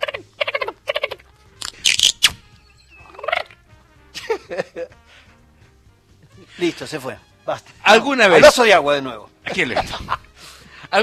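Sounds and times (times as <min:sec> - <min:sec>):
person imitating dolphin calls: 0:00.0 - 0:02.3
laughter: 0:04.2 - 0:05.0, 0:09.5 - 0:11.0
speech: 0:04.5 - 0:05.3, 0:06.4 - 0:10.2.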